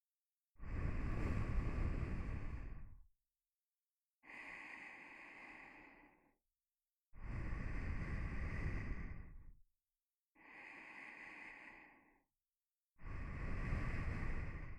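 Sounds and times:
nose breathing while lying beside: 0.6 - 2.9, 4.2 - 6.3, 7.2 - 9.5, 10.4 - 12.2, 13.0 - 14.7.

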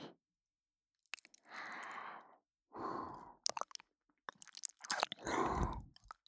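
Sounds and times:
ear licking with no ambient sound: 1.1 - 2.0, 3.5 - 6.2.

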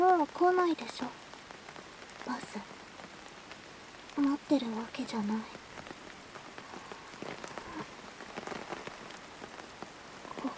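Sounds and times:
steady rain on a hard surface: 0.0 - 10.5
speech: 0.2 - 1.2, 2.2 - 2.8, 4.2 - 5.6.

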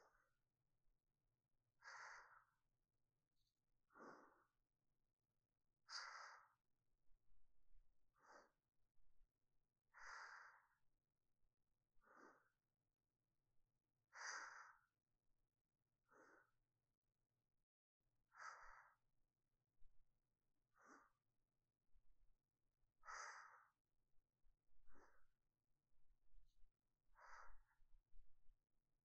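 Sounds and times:
sleeping breath: 1.8 - 2.6, 3.9 - 4.6, 5.9 - 6.6, 8.1 - 8.6, 9.9 - 10.8, 12.0 - 12.6, 14.1 - 14.9, 16.1 - 16.6, 18.3 - 19.0, 20.7 - 21.3, 23.0 - 23.8, 24.9 - 25.4, 27.2 - 27.8.

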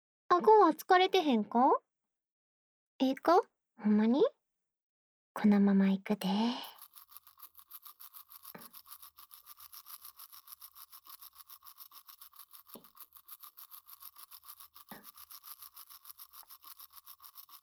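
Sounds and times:
speech: 0.3 - 1.9, 3.0 - 4.4, 5.4 - 6.8
toothbrush brushing the backs of teeth: 6.6 - 17.6.

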